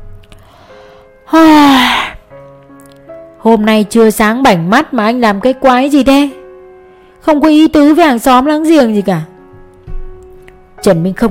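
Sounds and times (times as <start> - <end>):
speech: 1.3 - 2.0, 3.4 - 6.4, 7.2 - 9.3, 10.8 - 11.2
woman sitting cross-legged on a chair yawning: 1.3 - 2.2.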